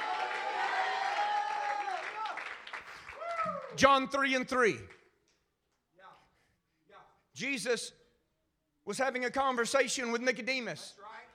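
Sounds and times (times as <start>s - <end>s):
audience clapping: 0.0s - 4.0s
speech: 3.7s - 5.0s, 7.4s - 8.0s, 8.8s - 11.0s.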